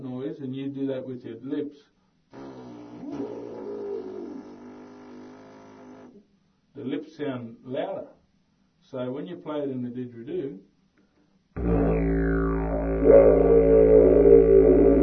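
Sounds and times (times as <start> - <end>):
didgeridoo: 3.0 - 5.0, 11.6 - 15.0.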